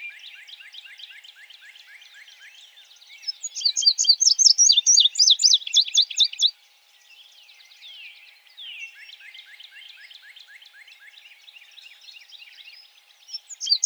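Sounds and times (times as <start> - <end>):
Indigo Bunting: 0.0 - 13.8.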